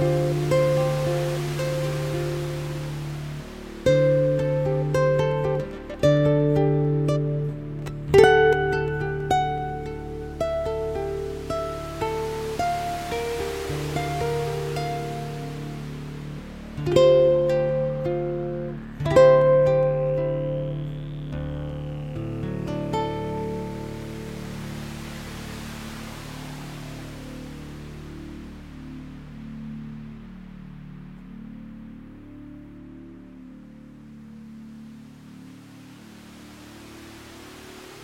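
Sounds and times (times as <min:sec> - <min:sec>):
droning waves: 0:00.0 - 0:38.0.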